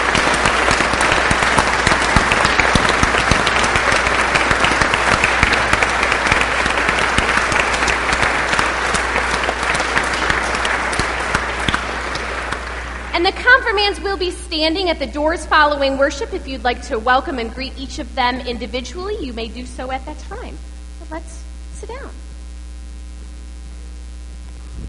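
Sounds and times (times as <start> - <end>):
audience clapping hands in welcome: 0.0 - 14.1
speech: 13.5 - 21.3.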